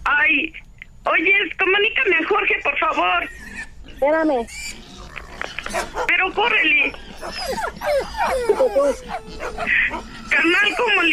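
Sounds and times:
speech: 1.2 - 4.8, 5.7 - 11.1
dog barking and whimpering: 5.6 - 11.1.

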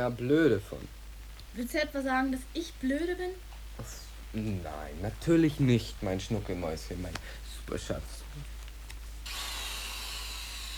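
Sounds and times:
speech: 0.0 - 1.0, 1.6 - 8.5
drilling: 9.2 - 10.7.

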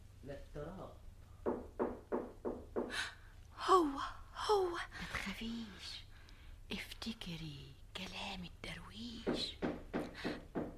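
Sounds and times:
speech: 0.3 - 1.0, 3.8 - 6.0, 7.0 - 10.4
knocking on a door: 1.4 - 3.0, 9.2 - 10.7.

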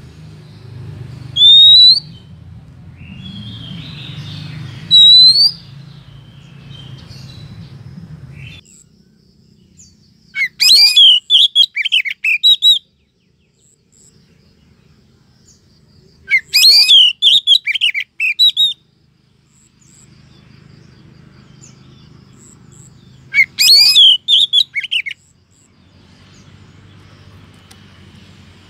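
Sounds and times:
bird chirping and twittering: 0.0 - 28.6.

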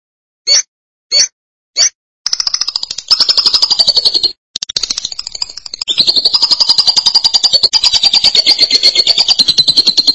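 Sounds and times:
lovebird chattering: 2.3 - 10.1.

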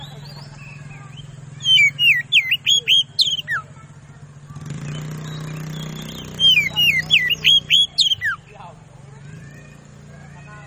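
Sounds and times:
Oriental magpie-robin singing fast loud whistled lure song: 0.0 - 3.7, 4.8 - 8.5.

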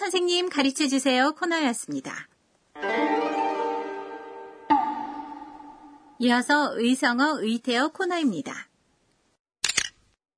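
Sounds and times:
speech: 0.1 - 3.2, 6.2 - 8.7
camera shutter click: 9.6 - 10.0.

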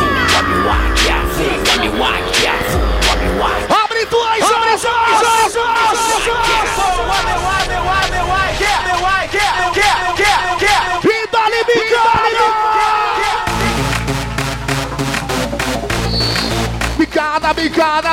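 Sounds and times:
large crowd shouting and cheering at a live music show: 0.0 - 18.1.

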